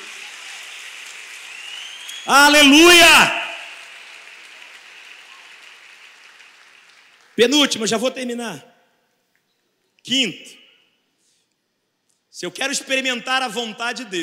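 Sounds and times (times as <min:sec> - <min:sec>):
audience applause: 0:00.0 - 0:07.8
speech: 0:02.2 - 0:03.4, 0:07.4 - 0:08.7, 0:10.0 - 0:10.6, 0:12.4 - 0:14.2.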